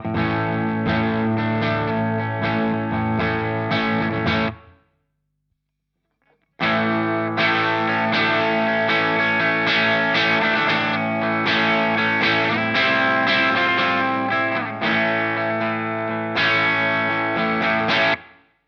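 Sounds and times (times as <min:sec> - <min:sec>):
Vox Valvenergy Mystic Edge effects loop: 0:00.0 - 0:04.7, 0:06.2 - 0:18.3.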